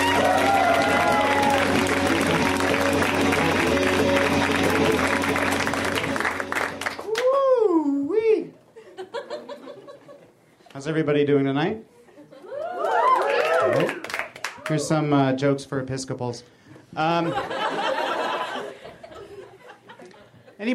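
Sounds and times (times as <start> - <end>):
audience applause and cheering for a comedian: 0.0 - 7.6, 12.5 - 15.0
audience laughter: 8.8 - 10.4, 17.2 - 20.6
speech: 10.9 - 11.9, 14.7 - 17.6.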